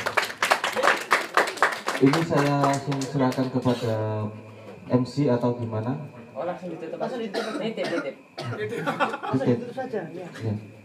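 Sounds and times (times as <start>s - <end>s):
audience applause for three speakers: 0.0s - 3.6s
speech: 2.0s - 10.8s
laughter: 8.6s - 9.7s.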